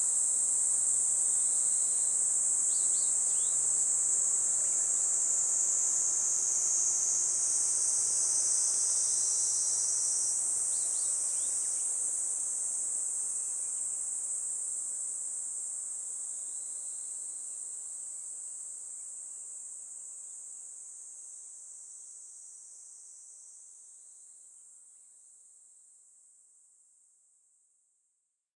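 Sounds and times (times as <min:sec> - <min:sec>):
Kaempfer cicadas droning: 0:00.0 - 0:20.0.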